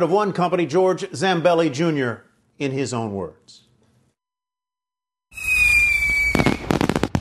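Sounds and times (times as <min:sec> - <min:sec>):
speech: 0:00.0 - 0:03.6
rising whistle of a firework shell: 0:05.3 - 0:07.1.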